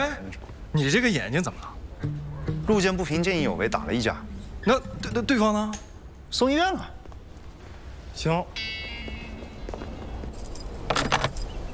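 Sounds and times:
speech: 0.0s - 7.0s, 8.2s - 8.8s
keys being shaken: 4.7s - 5.3s, 10.2s - 11.7s.

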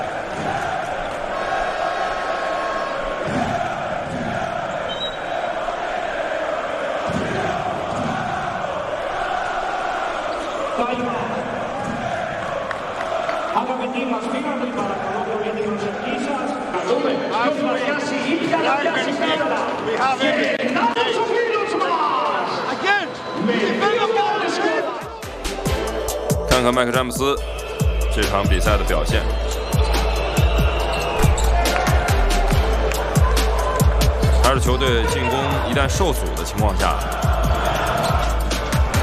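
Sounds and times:
crowd chanting: 0.0s - 17.4s, 22.2s - 39.0s
stadium crowd applauding and cheering: 0.0s - 39.0s
speech: 17.4s - 21.4s, 26.6s - 27.6s, 28.2s - 29.6s, 34.5s - 37.3s.

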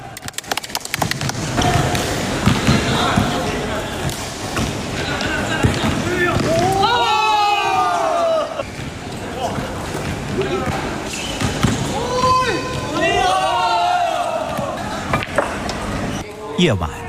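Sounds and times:
court noise: 0.0s - 17.0s
basketball bouncing during a game among water-conservancy workers: 1.0s - 3.4s, 5.6s - 6.7s, 8.7s - 12.9s
people shouting: 6.1s - 8.6s, 11.8s - 15.1s
person speaking: 16.6s - 17.0s.

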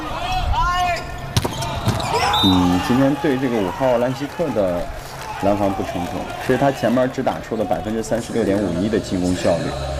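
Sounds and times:
volleyball serve impacts: 1.3s - 2.2s
speech: 2.4s - 9.9s.

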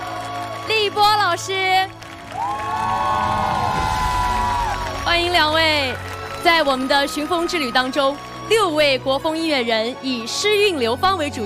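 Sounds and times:
audience cheering: 0.0s - 1.2s, 2.0s - 8.2s
audience applause welcoming guests at a traditional Chinese-style music show: 0.0s - 8.9s
speech: 0.9s - 3.6s, 5.1s - 11.4s.

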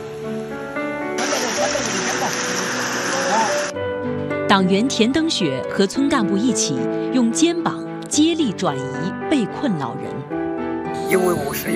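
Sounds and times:
soft music: 0.0s - 11.7s
rushing floodwater: 1.2s - 3.7s
speech: 4.5s - 10.4s, 11.1s - 11.7s.

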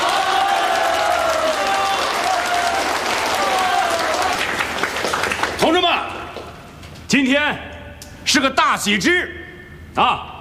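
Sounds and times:
wedding guests applauding: 0.0s - 6.6s
speech: 7.2s - 7.7s, 8.3s - 9.4s, 10.0s - 10.3s.

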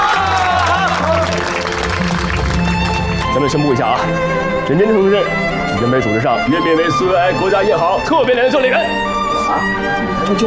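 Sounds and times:
group applauding to welcome a new comrade: 0.0s - 4.4s
speech: 3.4s - 10.4s.

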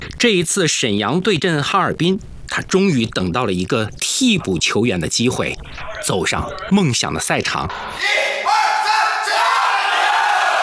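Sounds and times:
speech: 0.2s - 8.4s
crowd cheering in the stands at a Shenyang versus Harbin football match: 8.0s - 10.6s.

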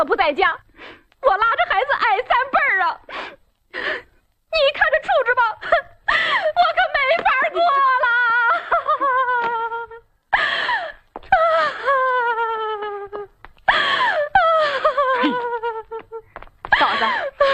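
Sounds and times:
speech: 0.0s - 4.0s
woman crying and wailing during a domestic quarrel: 5.4s - 17.5s.

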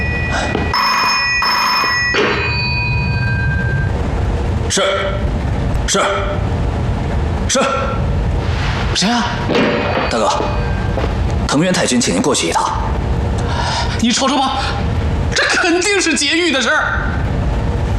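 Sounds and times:
telephone bell ringing: 0.0s - 3.9s
steady loud rumble of noise: 0.0s - 17.9s.

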